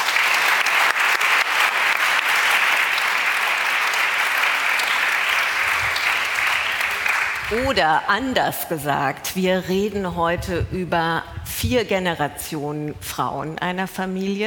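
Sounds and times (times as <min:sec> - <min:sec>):
audience applause: 0:00.0 - 0:08.1
speech: 0:07.5 - 0:14.4.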